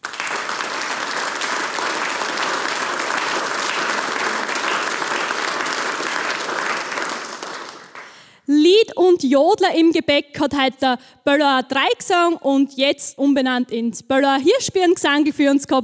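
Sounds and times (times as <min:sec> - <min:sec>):
audience applause: 0:00.0 - 0:08.2
speech: 0:09.0 - 0:15.8.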